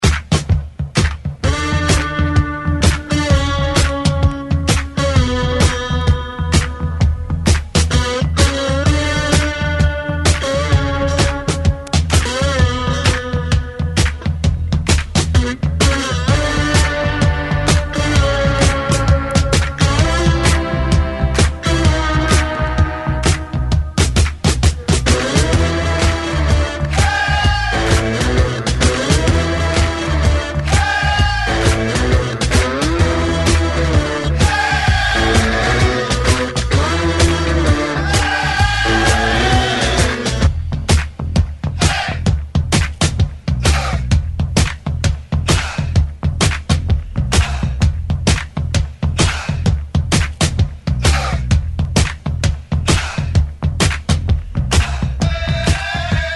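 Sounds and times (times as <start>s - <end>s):
rock and roll intro: 0.0s - 56.3s.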